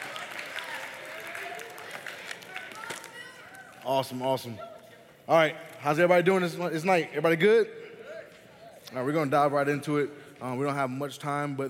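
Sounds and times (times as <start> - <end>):
audience clapping: 0.0 - 4.2
speech: 3.9 - 4.7, 5.3 - 7.8, 8.9 - 11.6.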